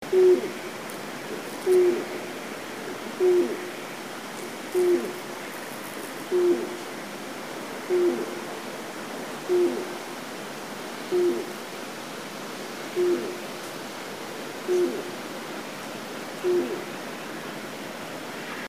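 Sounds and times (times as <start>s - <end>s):
Japanese night heron hooting: 0.0s - 0.6s, 1.3s - 2.2s, 2.9s - 3.8s, 4.7s - 5.2s, 6.3s - 6.8s, 7.9s - 8.5s, 9.5s - 10.0s, 11.1s - 11.6s, 12.9s - 13.4s, 14.6s - 15.2s, 16.4s - 16.9s
background hiss: 0.0s - 18.6s.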